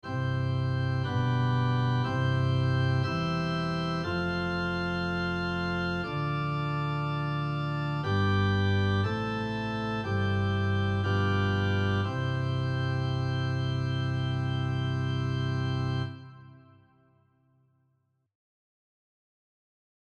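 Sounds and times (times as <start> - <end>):
harmonic chord progression: 0.0 - 17.0.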